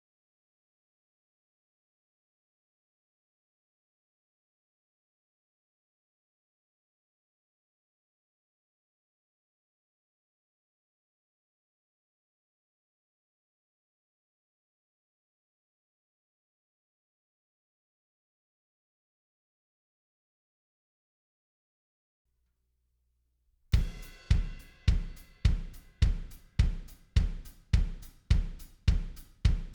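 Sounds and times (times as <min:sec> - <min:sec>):
drums: 0:23.8 - 0:29.7.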